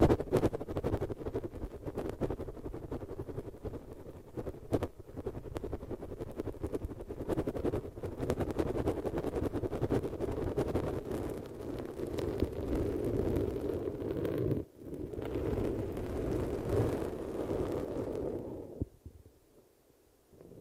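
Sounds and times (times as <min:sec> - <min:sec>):
rumbling crackling rush of noise: 0:00.0 - 0:18.9.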